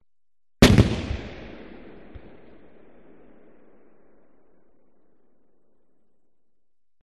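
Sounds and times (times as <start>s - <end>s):
gun cannon firing: 0.6s - 4.8s.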